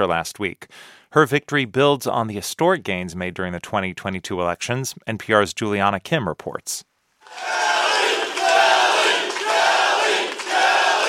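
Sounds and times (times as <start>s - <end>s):
speech: 0.0s - 7.7s
large crowd chanting in unison at a victory speech: 7.3s - 11.0s.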